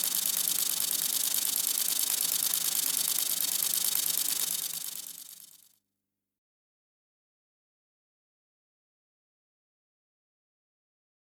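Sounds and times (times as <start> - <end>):
long-winged conehead bush cricket stridulating: 0.0 - 5.6.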